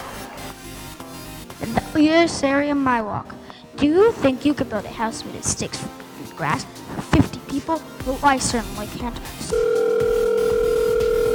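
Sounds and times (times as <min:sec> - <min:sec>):
speech: 0:01.6 - 0:10.1
telephone ringing: 0:09.5 - 0:11.3.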